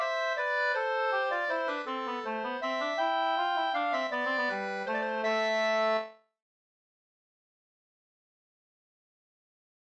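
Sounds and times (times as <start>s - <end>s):
two-part waltz in A minor: 0.0s - 6.1s.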